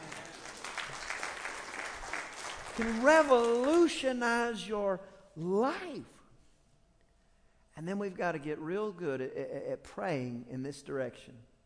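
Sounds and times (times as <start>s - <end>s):
audience applause: 0.0s - 3.8s
speech: 2.8s - 6.2s, 7.8s - 11.5s.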